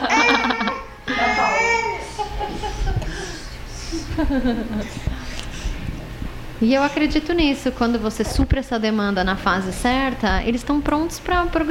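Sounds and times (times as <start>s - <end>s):
baby crying in short high wailing bursts: 0.0s - 2.4s
laughter: 0.0s - 5.3s
speech: 4.2s - 5.1s, 6.6s - 11.6s.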